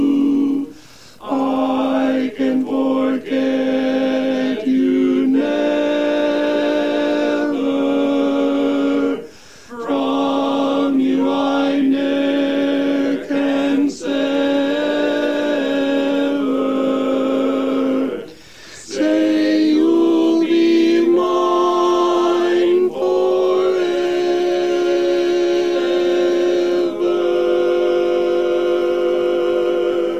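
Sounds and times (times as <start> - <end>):
tenor voice of a barbershop quartet: 0.0 - 30.1.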